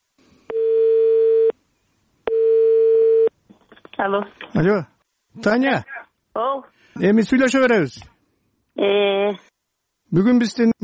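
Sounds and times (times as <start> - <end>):
telephone ringback tone: 0.5 - 1.5, 2.3 - 3.3
speech: 4.0 - 8.1, 8.8 - 9.5, 10.1 - 10.8.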